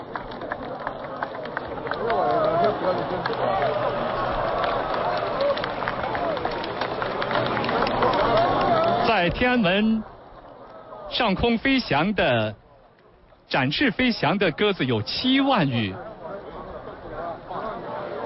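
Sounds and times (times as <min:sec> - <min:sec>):
loud applause from reviewing stand crowd: 0:00.0 - 0:12.5, 0:13.6 - 0:18.2
speech: 0:09.3 - 0:10.1, 0:11.1 - 0:12.6, 0:13.5 - 0:16.1.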